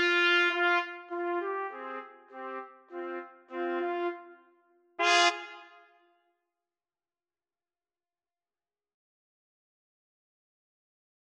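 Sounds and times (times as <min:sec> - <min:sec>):
trumpet trio playing: 0:00.0 - 0:04.4, 0:05.0 - 0:05.8.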